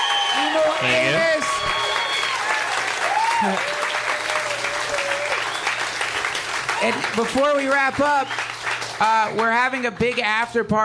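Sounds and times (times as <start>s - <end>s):
audience whistles and cheers: 0.0s - 7.1s, 8.0s - 8.6s
audience applause: 0.0s - 10.6s
speech: 0.4s - 1.8s, 3.4s - 3.8s, 6.8s - 8.4s, 9.0s - 10.8s.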